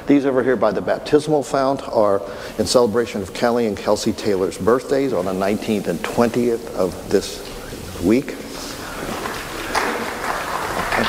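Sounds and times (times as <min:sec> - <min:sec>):
speech: 0:00.1 - 0:09.2
church congregation applauding: 0:07.7 - 0:11.0.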